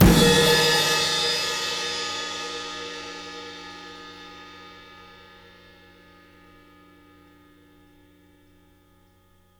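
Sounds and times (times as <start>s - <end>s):
crash: 0.0s - 1.7s.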